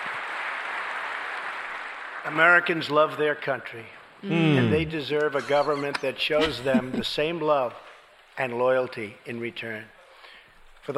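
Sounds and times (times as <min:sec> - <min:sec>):
rousing applause in a speech recording: 0:00.0 - 0:02.5
speech: 0:02.2 - 0:10.0
laughter: 0:04.5 - 0:07.3.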